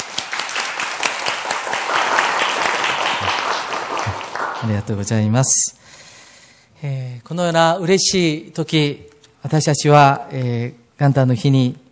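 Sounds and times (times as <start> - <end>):
audience applause: 0.0 - 4.9
speech: 4.6 - 5.8, 6.8 - 11.8.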